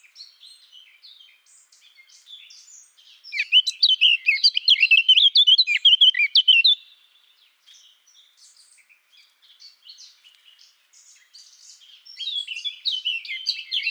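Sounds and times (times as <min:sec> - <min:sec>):
Eurasian blackcap Sylvia atricapilla singing a fast varied warble: 0:03.2 - 0:06.8.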